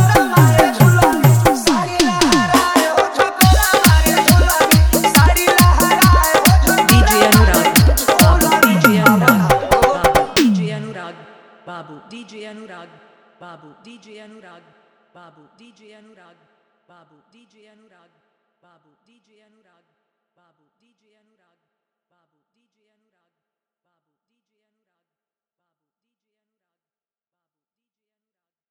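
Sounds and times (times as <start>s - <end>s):
hard dholak drum bass mix: 0.0s - 11.0s.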